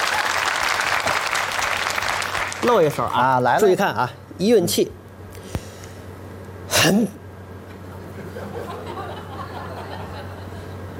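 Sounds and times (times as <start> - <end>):
crowd applause: 0.0 - 3.2
speech: 2.6 - 5.0, 6.8 - 7.2
laughter: 8.0 - 10.9.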